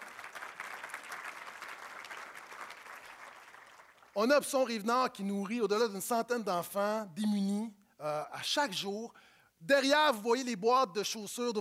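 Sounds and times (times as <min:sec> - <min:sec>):
audience applause: 0:00.0 - 0:04.2
speech: 0:04.2 - 0:11.5.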